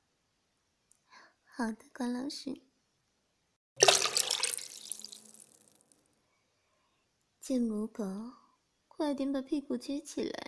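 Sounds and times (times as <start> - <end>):
speech: 1.6 - 2.7, 7.5 - 8.4, 9.0 - 10.4
liquid poured into a bucket: 3.8 - 5.8.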